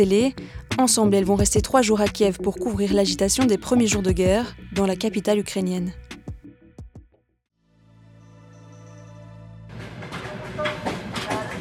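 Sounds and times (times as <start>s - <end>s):
speech: 0.0s - 6.0s
broadband rattling noise: 9.7s - 11.5s
passenger train moving slowly along tracks at night: 9.7s - 11.5s.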